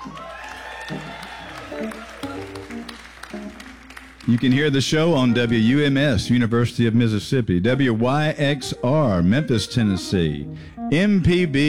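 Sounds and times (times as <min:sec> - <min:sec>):
scattered voices and whoops: 0:00.0 - 0:04.7
live audience applauding: 0:00.0 - 0:05.7
speech: 0:04.3 - 0:11.6.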